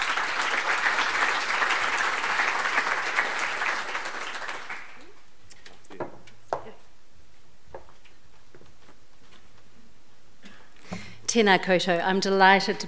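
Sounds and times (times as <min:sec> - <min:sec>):
audience applause: 0:00.0 - 0:05.2
speech: 0:11.3 - 0:12.8.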